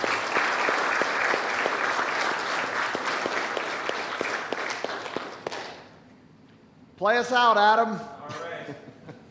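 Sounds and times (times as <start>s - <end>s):
audience applause: 0.0s - 5.9s
speech: 7.0s - 8.8s.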